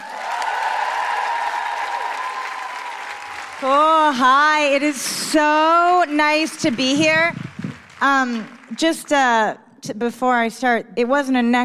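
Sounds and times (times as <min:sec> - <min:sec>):
audience excited woo-hoo cheering: 0:00.0 - 0:03.8
audience applause at a Fringe comedy show welcoming a comedian: 0:00.0 - 0:09.1
speech: 0:03.6 - 0:07.4, 0:08.0 - 0:11.6.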